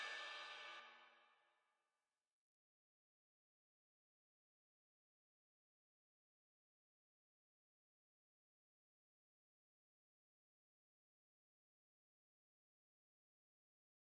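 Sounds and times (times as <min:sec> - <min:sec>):
drums: 0:00.0 - 0:01.0.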